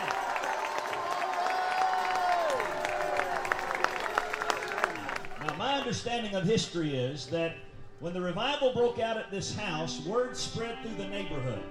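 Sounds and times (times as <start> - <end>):
crowd clapping: 0.0 - 6.4
speech: 5.8 - 11.7.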